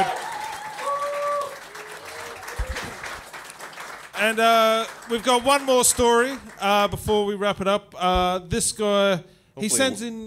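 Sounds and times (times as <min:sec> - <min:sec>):
round of applause: 0:00.0 - 0:06.7
speech: 0:04.2 - 0:10.2.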